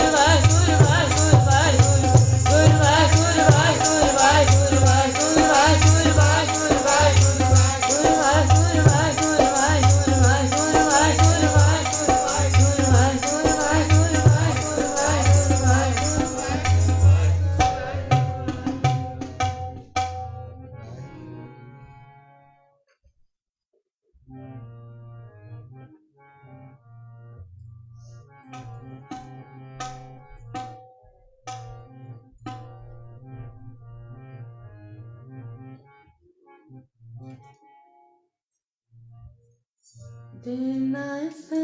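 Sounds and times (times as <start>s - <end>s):
kirtan devotional chanting: 0.0s - 22.0s, 40.3s - 41.6s.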